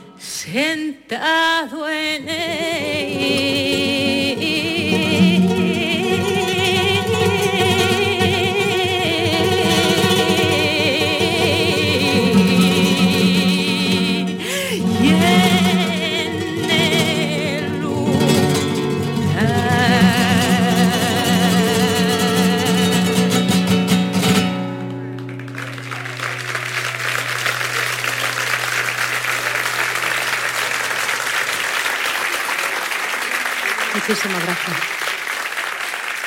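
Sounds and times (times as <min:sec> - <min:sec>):
live flamenco festival performance singing: 0:00.0 - 0:31.6
speech: 0:00.4 - 0:05.7
strummed accompaniment: 0:02.2 - 0:31.3
audience applause: 0:24.8 - 0:36.2.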